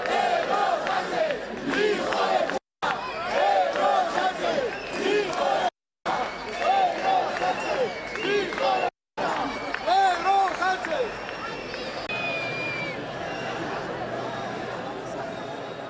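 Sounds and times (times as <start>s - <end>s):
crowd jeering, booing and shouting insults: 0.0s - 15.8s
crowd whistling: 4.6s - 5.3s, 7.4s - 13.7s.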